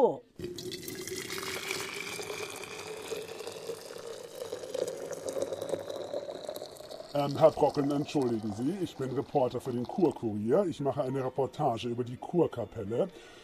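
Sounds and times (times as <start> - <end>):
speech: 0.0 - 0.3, 7.1 - 13.4
hot onion tea being poured: 0.4 - 10.6.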